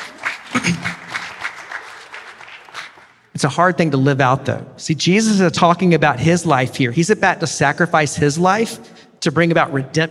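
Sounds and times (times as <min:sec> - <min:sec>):
audience clapping: 0:00.0 - 0:03.3
speech: 0:00.7 - 0:01.0, 0:03.4 - 0:10.0.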